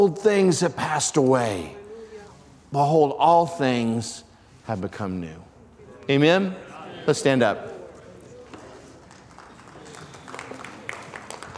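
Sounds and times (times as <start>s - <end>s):
speech: 0.0s - 1.8s, 2.7s - 5.5s, 6.1s - 7.8s
sparse hand claps: 9.1s - 11.5s.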